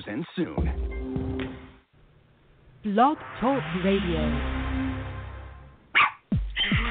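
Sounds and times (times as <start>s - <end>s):
speech: 0.0s - 0.9s, 2.8s - 4.6s
dog barking: 5.9s - 6.8s.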